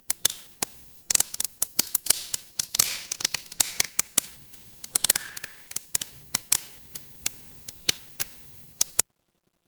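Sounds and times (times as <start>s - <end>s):
fireplace ambience: 0.0s - 9.0s.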